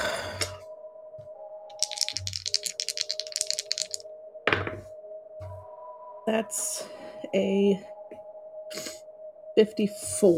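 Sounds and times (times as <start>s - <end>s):
dice clattering: 1.7s - 4.0s
speech: 6.3s - 7.9s, 9.6s - 10.3s.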